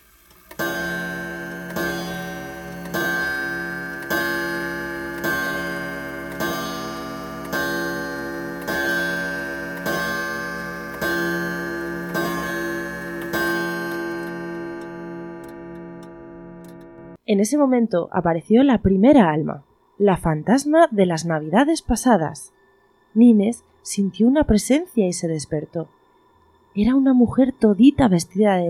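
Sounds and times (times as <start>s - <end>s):
clock striking twelve: 0.0s - 17.2s
speech: 17.3s - 26.0s, 26.8s - 28.6s.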